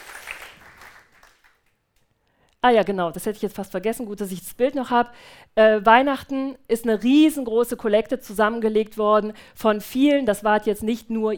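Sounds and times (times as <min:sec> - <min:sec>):
church congregation applauding: 0:00.0 - 0:01.8
speech: 0:02.6 - 0:11.3.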